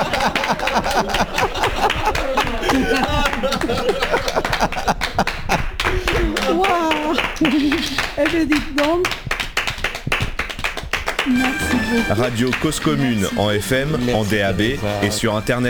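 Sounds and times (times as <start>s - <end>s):
laughter: 0.0s - 8.9s, 11.2s - 15.6s
audience clapping: 0.0s - 15.3s
speech: 8.3s - 9.2s, 12.1s - 15.6s.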